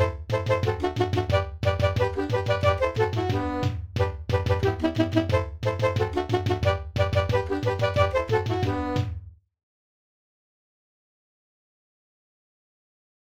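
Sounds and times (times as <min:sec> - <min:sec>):
drums: 0:00.0 - 0:09.3.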